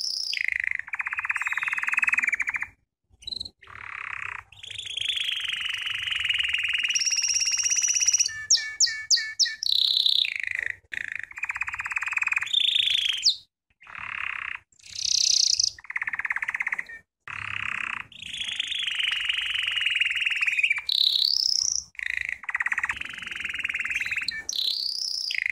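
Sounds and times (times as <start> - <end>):
American Singer canary singing: 0.0 - 25.5.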